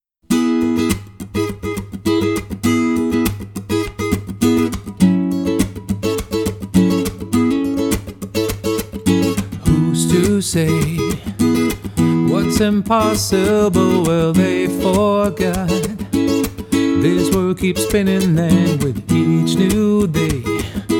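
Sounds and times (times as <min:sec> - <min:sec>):
unplugged solo: 0:00.0 - 0:20.9.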